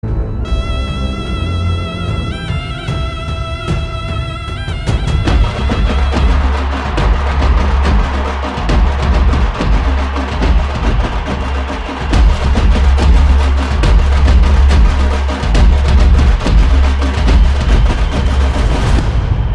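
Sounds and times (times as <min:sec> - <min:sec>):
mass background music: 0:00.0 - 0:19.5.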